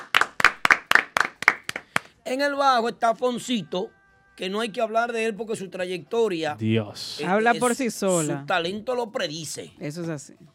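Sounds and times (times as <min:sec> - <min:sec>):
audience clapping for a musician: 0:00.0 - 0:02.2
speech: 0:02.3 - 0:10.5.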